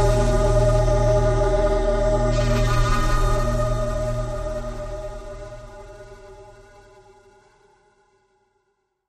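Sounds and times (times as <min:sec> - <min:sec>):
airy choir-like drone sci-fi ambience: 0:00.0 - 0:07.4.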